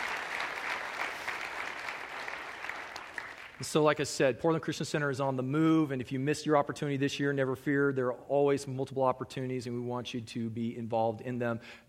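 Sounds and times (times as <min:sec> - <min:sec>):
audience applause: 0:00.0 - 0:03.6
speech: 0:03.6 - 0:11.8.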